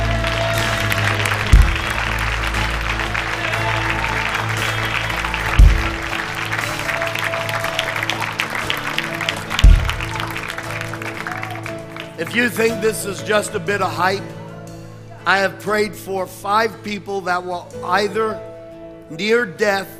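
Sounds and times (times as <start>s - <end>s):
audience clapping: 0.0s - 13.0s
low musical drone: 0.0s - 16.0s
deep thump: 1.4s - 2.1s, 5.6s - 6.1s, 9.6s - 10.2s
speech: 12.4s - 14.4s, 15.2s - 18.5s, 19.1s - 19.9s.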